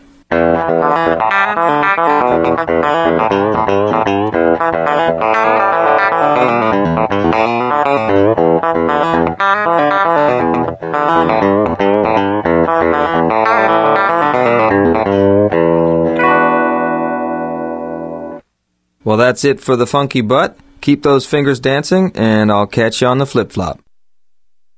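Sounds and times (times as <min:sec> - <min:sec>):
funky electric guitar riff with effects, hammer-ons and pull-offs: 0:00.3 - 0:18.4
speech: 0:00.4 - 0:15.3, 0:19.0 - 0:23.8.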